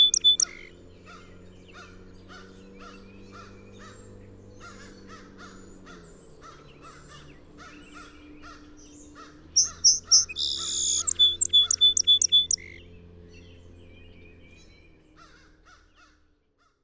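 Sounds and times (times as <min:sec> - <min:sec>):
song sparrow song with buzz and trill: 0:00.0 - 0:15.1
crows cawing: 0:09.6 - 0:11.1.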